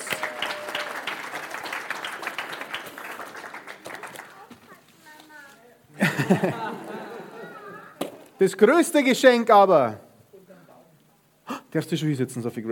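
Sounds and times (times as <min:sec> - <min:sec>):
audience applause: 0:00.0 - 0:04.8
laughter: 0:06.0 - 0:08.0
speech: 0:06.1 - 0:06.8, 0:08.4 - 0:10.0, 0:11.7 - 0:12.6.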